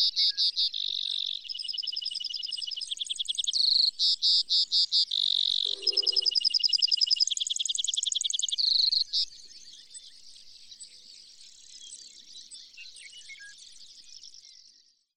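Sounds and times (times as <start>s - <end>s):
Brewer's sparrow song: 0.0s - 15.1s.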